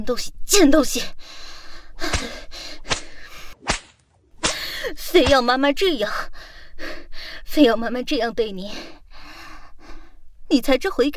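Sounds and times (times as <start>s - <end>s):
speech: 0.0s - 1.4s, 2.0s - 2.4s, 4.9s - 6.9s, 7.5s - 9.0s, 10.5s - 11.1s
thick whip lashes: 2.0s - 5.5s.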